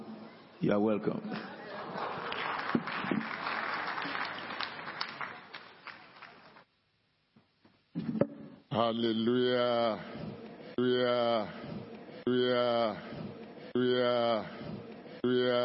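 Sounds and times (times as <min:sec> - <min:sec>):
speech: 0:00.6 - 0:01.8, 0:08.8 - 0:11.6, 0:12.3 - 0:13.2, 0:13.8 - 0:14.6, 0:15.2 - 0:15.6
congregation clapping at a church service: 0:01.4 - 0:06.7.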